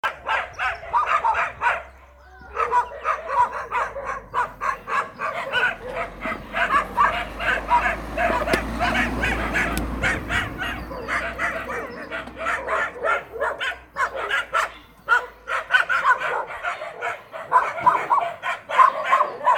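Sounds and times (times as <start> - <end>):
pack of dogs barking: 0.0 - 19.5
low engine-like rumble and hum: 3.8 - 14.0
sharp knocks: 8.2 - 10.6.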